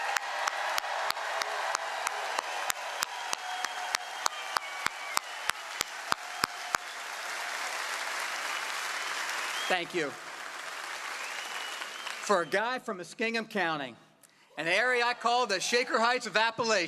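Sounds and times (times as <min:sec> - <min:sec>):
sharp evenly spaced rhythmic claps: 0:00.0 - 0:12.4
large crowd applauding loudly: 0:00.0 - 0:12.6
speech: 0:09.7 - 0:10.2, 0:12.3 - 0:14.0, 0:14.6 - 0:16.8.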